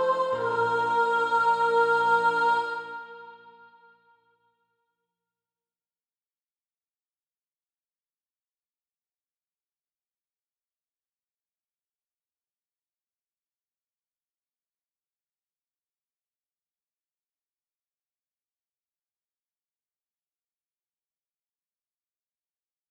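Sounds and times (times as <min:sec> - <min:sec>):
soprano singing: 0:00.0 - 0:04.3.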